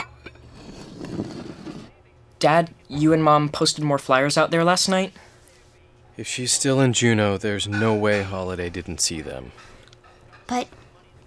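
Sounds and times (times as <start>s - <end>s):
breakfast dishes being cleared: 0.0s - 1.8s, 7.6s - 8.6s, 9.5s - 11.0s
low hum: 0.0s - 11.2s
speech: 2.4s - 5.3s, 6.2s - 9.8s, 10.5s - 10.8s.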